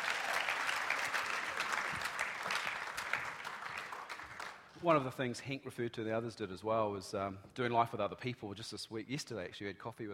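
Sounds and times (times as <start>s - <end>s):
sustained audience applause: 0.0s - 4.8s
speech: 4.8s - 10.1s.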